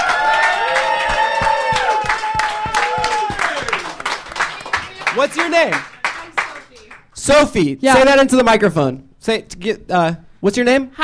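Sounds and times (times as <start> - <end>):
audience applause: 0.0 - 7.1
speech: 5.2 - 5.9, 7.2 - 11.0.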